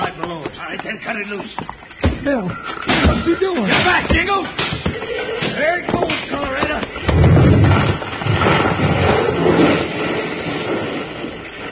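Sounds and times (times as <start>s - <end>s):
speech: 0.7s - 7.0s
heavy wooden beam crashing down over a door: 2.8s - 10.2s.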